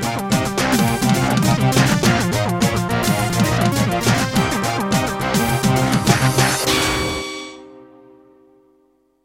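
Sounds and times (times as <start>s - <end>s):
jingle: 0.1s - 7.9s.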